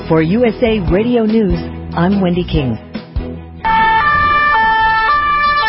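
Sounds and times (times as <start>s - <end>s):
speech: 0.1s - 2.9s
police sirens in Paris: 3.6s - 5.6s.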